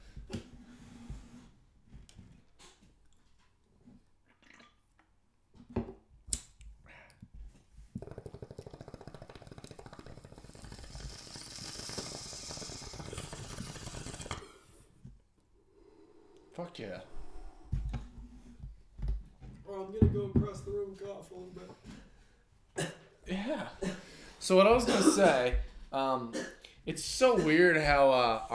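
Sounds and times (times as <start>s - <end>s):
bong hit bubbling: 4.3s - 4.9s, 7.9s - 15.1s
speech: 16.6s - 17.2s, 19.7s - 21.8s, 23.3s - 28.5s.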